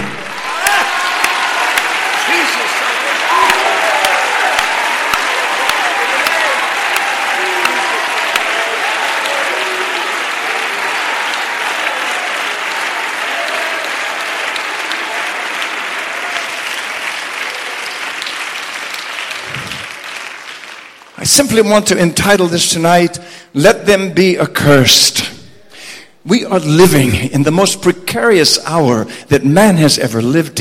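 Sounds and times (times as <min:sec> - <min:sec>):
audience clapping: 0:00.0 - 0:21.8
speech: 0:21.6 - 0:25.3, 0:26.2 - 0:30.5.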